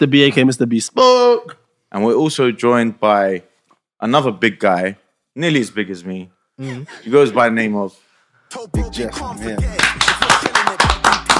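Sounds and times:
speech: 0:00.0 - 0:10.0
round of applause: 0:09.6 - 0:11.3.

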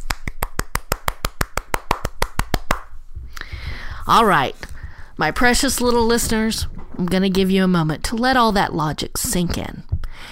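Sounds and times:
hand clapping applause: 0:00.0 - 0:02.9
speech: 0:04.1 - 0:09.9.

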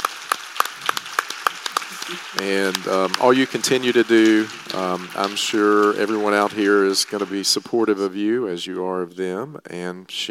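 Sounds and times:
audience applause: 0:00.0 - 0:08.2
speech: 0:02.1 - 0:10.2.

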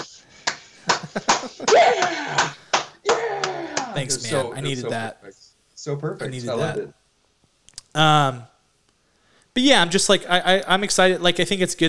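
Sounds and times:
slow clap: 0:00.0 - 0:04.3
laughter: 0:00.0 - 0:05.3, 0:06.2 - 0:06.8
speech: 0:01.2 - 0:02.6, 0:04.0 - 0:07.0, 0:07.9 - 0:08.5, 0:09.6 - 0:11.8.

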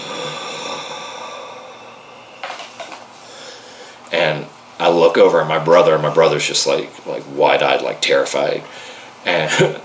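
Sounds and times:
voice imitating a low guttural breath: 0:00.0 - 0:02.6, 0:03.2 - 0:04.0
speech: 0:04.9 - 0:09.8.

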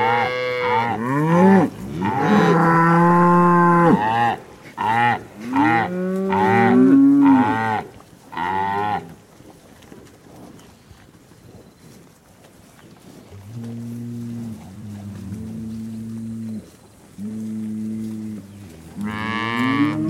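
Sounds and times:
cow mooing: 0:00.0 - 0:09.1, 0:13.4 - 0:20.0.

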